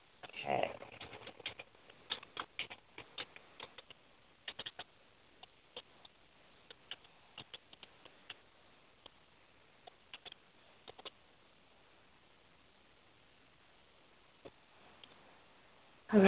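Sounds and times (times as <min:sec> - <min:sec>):
faint keyboard typing: 0:00.8 - 0:08.4, 0:09.8 - 0:11.2.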